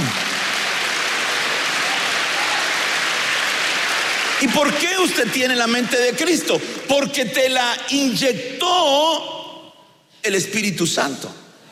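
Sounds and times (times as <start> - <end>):
audience clapping: 0.0 - 7.1
speech: 4.4 - 9.4, 10.2 - 11.4.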